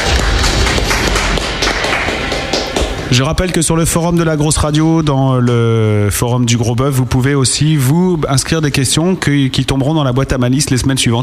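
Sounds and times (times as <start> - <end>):
applause: 0.0 - 3.2
speech: 3.2 - 11.2.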